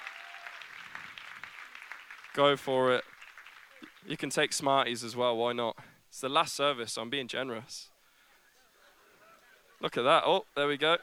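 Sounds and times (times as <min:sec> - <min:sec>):
audience clapping: 0:00.0 - 0:04.3
speech: 0:02.4 - 0:03.1, 0:04.0 - 0:07.9, 0:09.8 - 0:11.0.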